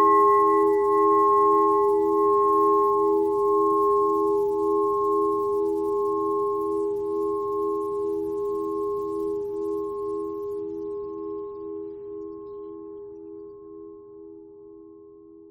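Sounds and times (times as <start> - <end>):
bell: 0.0 - 11.6.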